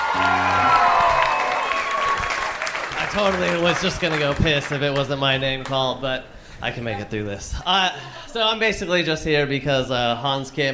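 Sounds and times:
comedy show crowd cheering and shouting: 0:00.0 - 0:02.3
comedy show audience applauding: 0:00.0 - 0:05.8
speech: 0:03.1 - 0:10.7.

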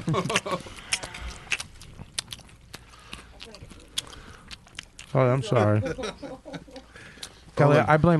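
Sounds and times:
laughter: 0:00.0 - 0:00.8, 0:05.4 - 0:07.0
speech: 0:00.0 - 0:00.8, 0:05.2 - 0:06.5, 0:07.6 - 0:08.1
person chewing food into microphone: 0:00.0 - 0:07.6.

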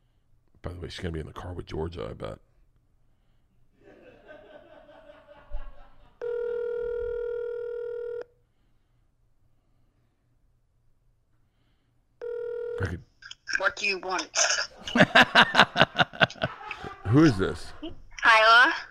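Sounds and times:
speech: 0:00.6 - 0:02.5, 0:12.8 - 0:15.8, 0:17.1 - 0:18.7
laughter: 0:03.8 - 0:06.2, 0:14.4 - 0:18.0
phone electronic ring tone: 0:06.2 - 0:08.3, 0:12.2 - 0:13.0.

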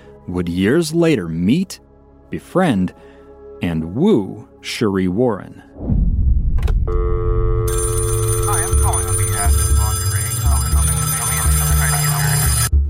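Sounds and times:
speech: 0:00.3 - 0:06.0
telephone ringing: 0:06.9 - 0:12.7.

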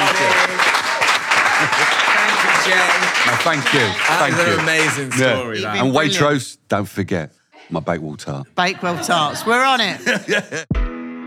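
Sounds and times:
audience applause for a guest: 0:00.0 - 0:05.8
laughter: 0:00.0 - 0:05.8, 0:08.6 - 0:10.7
speech: 0:02.7 - 0:10.8.

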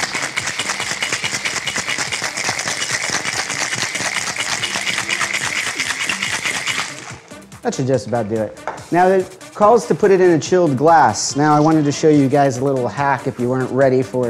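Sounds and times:
ice rattling in a cocktail shaker: 0:00.0 - 0:07.3
speech: 0:07.6 - 0:14.2.

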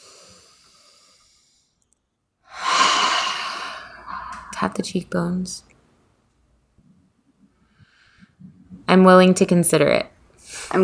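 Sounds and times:
deep breath during a guided tapping exercise: 0:00.0 - 0:01.8, 0:02.5 - 0:04.7, 0:10.4 - 0:10.8
speech: 0:04.6 - 0:05.8, 0:08.9 - 0:10.8.

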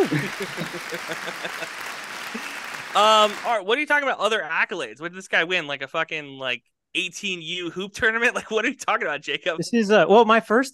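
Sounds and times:
laughter: 0:00.0 - 0:03.6, 0:07.7 - 0:08.9
audience applause: 0:00.0 - 0:03.7
speech: 0:00.1 - 0:10.7.

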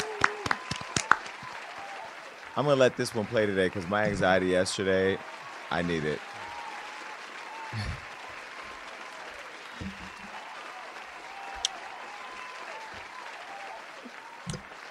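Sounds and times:
long talk show audience applause: 0:00.0 - 0:14.8
speech: 0:02.6 - 0:06.3.

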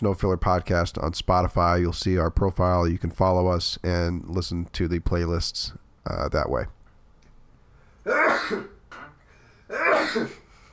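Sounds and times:
speech: 0:00.0 - 0:06.8, 0:08.0 - 0:08.8, 0:09.7 - 0:10.4
sneezes: 0:08.0 - 0:08.8, 0:09.7 - 0:10.5.

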